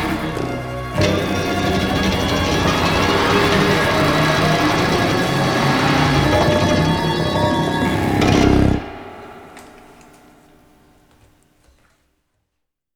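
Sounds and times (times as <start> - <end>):
orchestra playing a gospel piece: 0.0 - 10.3.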